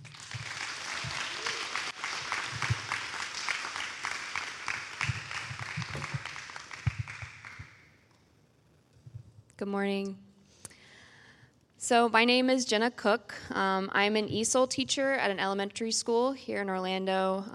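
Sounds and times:
audience applause at a morning gathering welcoming a new member: 0.0s - 7.8s
speech: 9.6s - 10.2s, 11.9s - 17.5s.

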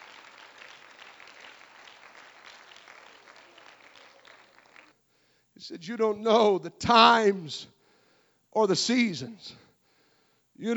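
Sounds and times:
audience clapping: 0.0s - 5.0s
speech: 5.6s - 7.8s, 8.6s - 9.6s, 10.6s - 10.7s.

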